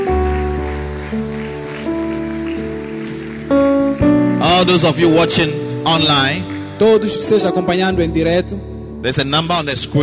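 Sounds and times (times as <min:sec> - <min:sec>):
audience clapping: 0:00.0 - 0:07.4
speech: 0:01.1 - 0:01.4, 0:04.6 - 0:10.0.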